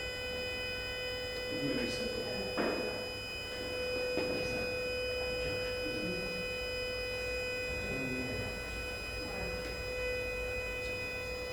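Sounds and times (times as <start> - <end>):
building alarm: 0.0 - 11.5.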